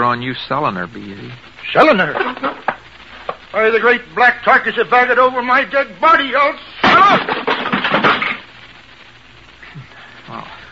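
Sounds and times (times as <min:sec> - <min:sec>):
speech: 0:00.1 - 0:02.5, 0:03.6 - 0:07.4
wooden chair breaking: 0:06.8 - 0:08.4.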